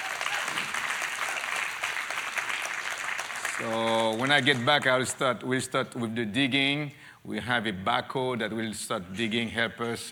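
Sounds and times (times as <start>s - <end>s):
audience clapping: 0.0s - 5.2s
speech: 3.6s - 10.1s.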